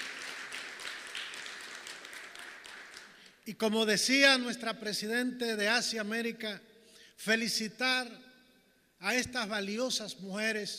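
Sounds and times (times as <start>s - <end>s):
audience applause: 0.0s - 3.3s
speech: 3.5s - 8.3s, 9.0s - 10.7s.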